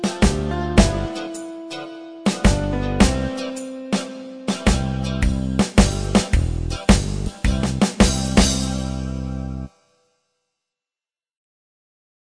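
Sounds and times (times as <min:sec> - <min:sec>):
rock and roll music: 0:00.0 - 0:09.7.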